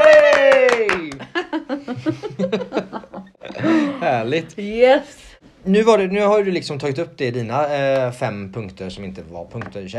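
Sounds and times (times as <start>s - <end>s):
applause: 0.0s - 1.2s
laughter: 0.9s - 4.4s
speech: 4.1s - 9.9s.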